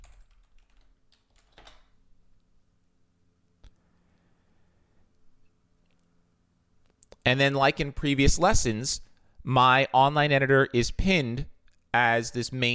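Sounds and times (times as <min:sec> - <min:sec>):
typing a password on a computer keyboard: 0:00.0 - 0:01.9
speech: 0:07.2 - 0:12.7.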